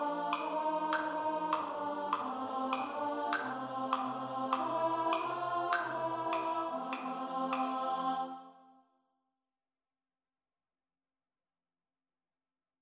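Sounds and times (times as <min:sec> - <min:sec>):
alto study: 0:00.0 - 0:08.6.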